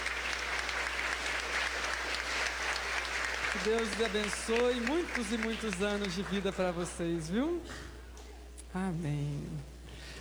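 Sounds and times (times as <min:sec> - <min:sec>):
crowd applause: 0:00.0 - 0:07.0
speech: 0:03.6 - 0:07.9, 0:08.7 - 0:09.7.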